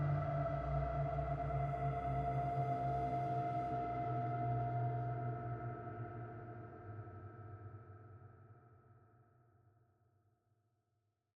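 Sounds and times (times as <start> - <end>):
ghostly music bed: 0.0 - 6.8.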